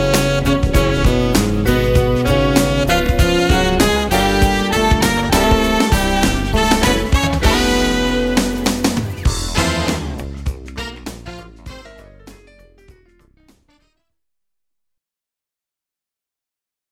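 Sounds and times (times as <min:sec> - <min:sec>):
tenor saxophone sample: 0:00.0 - 0:12.4.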